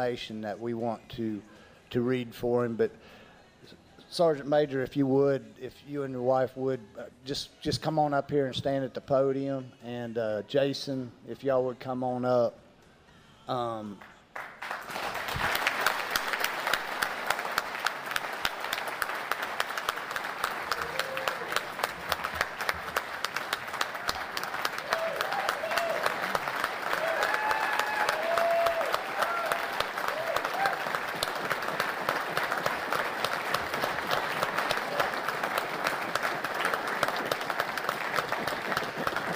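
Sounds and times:
speech: 0.0s - 12.6s, 13.5s - 14.5s
audience applause at a meeting: 14.4s - 39.3s.

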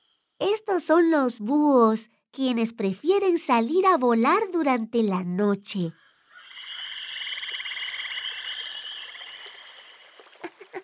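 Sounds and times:
speech: 0.6s - 6.0s
chorus of little frogs croaking in high-pitched trills: 5.9s - 10.8s.

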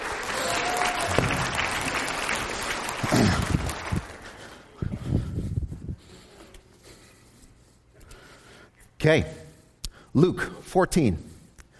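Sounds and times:
audience clapping: 0.0s - 4.8s
speech: 9.0s - 9.4s, 10.1s - 11.3s.

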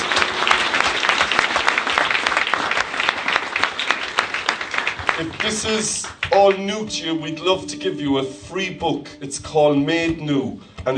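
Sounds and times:
crowd applause: 0.0s - 6.6s
speech: 5.2s - 10.9s.

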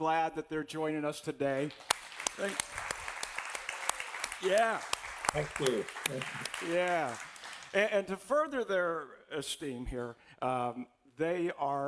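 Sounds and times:
speech: 0.0s - 2.9s, 4.4s - 11.8s
audience applause: 1.8s - 7.9s.

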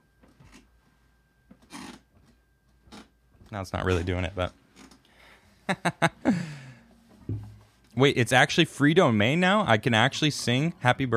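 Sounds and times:
squeaky chair creaking: 0.3s - 0.7s, 1.6s - 3.1s, 3.9s - 5.0s
speech: 3.5s - 4.6s, 5.7s - 6.5s, 8.0s - 11.1s.

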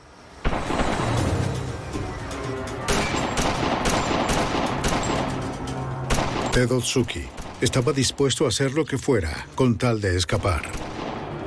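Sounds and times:
gunfire in a shootout: 0.4s - 1.6s, 2.9s - 7.9s, 10.7s - 11.4s
speech: 6.6s - 10.9s.

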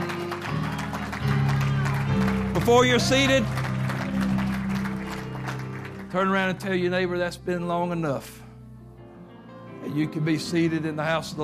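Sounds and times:
audience clapping: 0.0s - 7.0s
sustained keyboard chords: 0.0s - 11.4s
speech: 2.6s - 3.6s, 6.1s - 8.4s, 10.0s - 11.4s.

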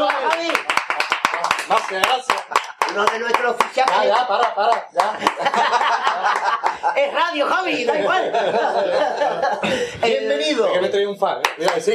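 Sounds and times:
audience applause: 0.0s - 7.0s
laughter: 0.0s - 10.4s
speech: 1.7s - 11.9s.

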